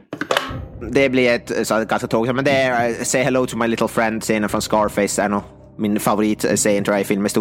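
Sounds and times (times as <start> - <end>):
drum roll: 0.3 - 3.2
cymbal crash: 0.5 - 3.0
speech: 0.8 - 7.3.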